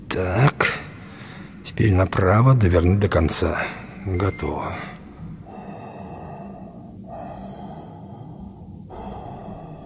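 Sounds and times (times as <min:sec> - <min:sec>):
speech: 0:00.2 - 0:00.5, 0:01.8 - 0:05.0
hissing breaths drawn through an oxygen mask: 0:05.4 - 0:09.8.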